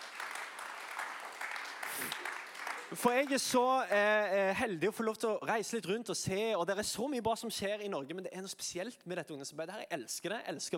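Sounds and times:
audience applause: 0.0s - 3.6s
speech: 2.9s - 10.7s.

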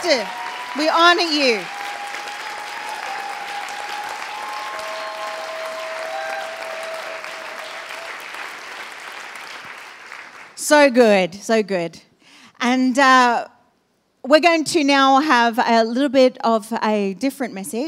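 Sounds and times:
speech: 0.0s - 1.8s, 10.7s - 13.5s, 14.2s - 17.8s
audience applause for pastors: 0.0s - 10.6s.

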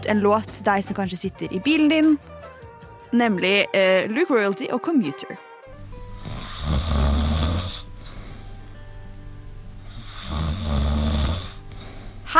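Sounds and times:
speech: 0.0s - 2.4s, 3.1s - 5.5s
snoring: 6.1s - 8.3s, 9.9s - 12.3s.

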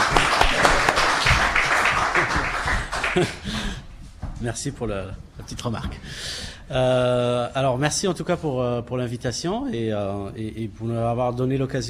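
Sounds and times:
audience applause: 0.0s - 3.8s
speech: 3.2s - 3.6s, 4.4s - 11.8s.

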